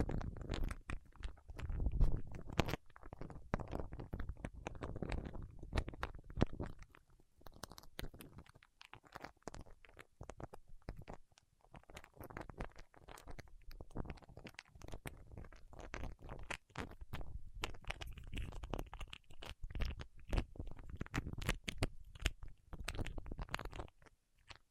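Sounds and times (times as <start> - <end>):
fingertips pressing and peeling against wax: 0.0 - 24.6.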